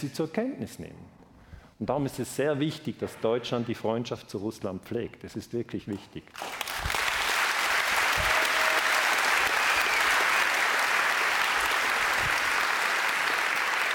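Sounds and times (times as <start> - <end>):
speech: 0.0 - 1.2, 1.8 - 6.7
audience applause: 6.4 - 13.9.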